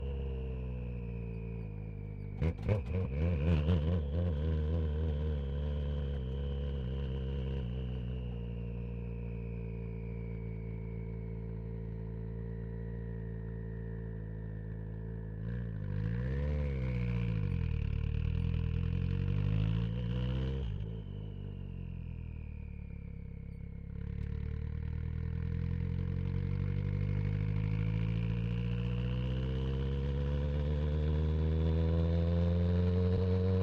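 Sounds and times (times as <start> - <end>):
Citroen Xsara WRC rally car exhaust starting, driving and stopping on ramps: 0.0 - 33.6.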